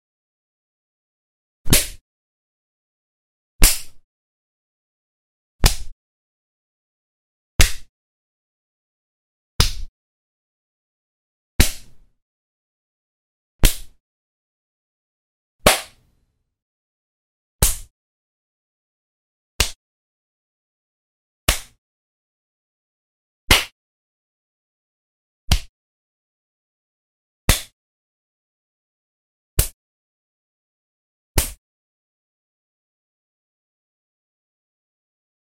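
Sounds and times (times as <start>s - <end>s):
slap in the face: 1.7s - 2.0s, 3.6s - 4.0s, 5.6s - 6.0s, 7.6s - 7.9s, 9.6s - 9.9s, 11.6s - 12.0s, 13.6s - 14.0s, 15.6s - 16.1s, 17.6s - 17.9s, 19.6s - 19.8s, 21.5s - 21.8s, 23.5s - 23.8s, 25.5s - 25.7s, 27.5s - 27.8s, 29.6s - 29.8s, 31.4s - 31.6s.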